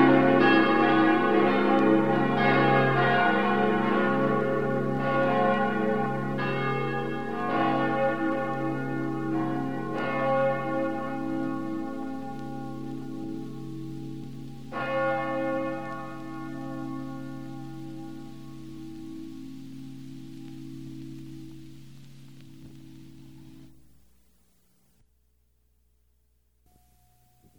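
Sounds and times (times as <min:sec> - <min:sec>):
bells ringing: 0:00.0 - 0:18.3.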